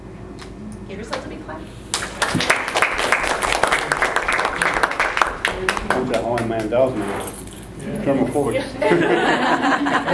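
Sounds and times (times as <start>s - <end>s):
speech: 0.9s - 2.8s, 5.6s - 10.1s
applause: 1.9s - 6.8s
laughter: 8.5s - 10.1s.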